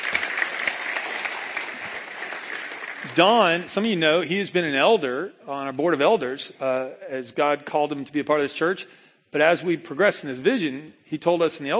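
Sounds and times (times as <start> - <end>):
audience applauding: 0.0 - 3.9
speech: 3.0 - 11.7.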